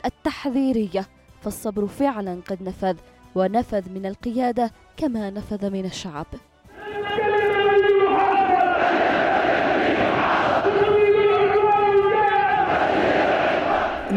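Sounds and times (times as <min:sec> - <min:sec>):
speech: 0:00.0 - 0:06.5
rally crowd chanting slogans: 0:06.7 - 0:14.1.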